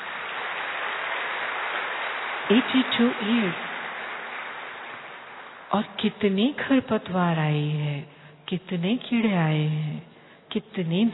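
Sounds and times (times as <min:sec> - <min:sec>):
audience applause: 0:00.0 - 0:05.7
speech: 0:02.5 - 0:03.7, 0:05.7 - 0:11.1.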